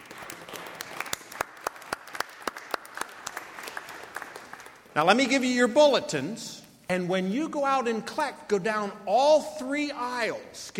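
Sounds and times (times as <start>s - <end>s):
audience applause: 0.0s - 4.9s
speech: 5.0s - 10.7s.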